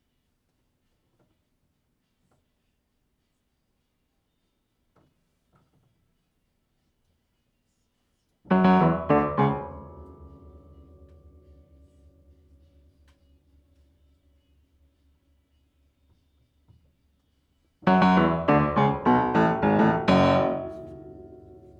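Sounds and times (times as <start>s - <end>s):
piano: 8.5s - 13.1s, 17.8s - 21.7s.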